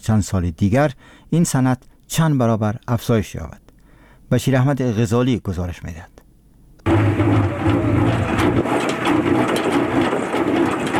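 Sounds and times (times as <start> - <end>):
speech: 0.0 - 3.6, 4.3 - 6.1
honey extractor machine in the high mountains of Andarab: 6.9 - 10.9.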